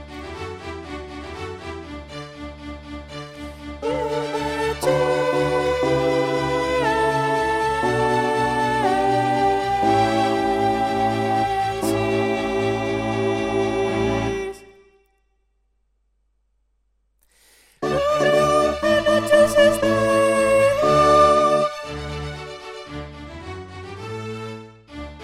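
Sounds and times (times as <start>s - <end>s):
soprano singing sacred music: 3.6s - 14.9s, 17.8s - 22.4s.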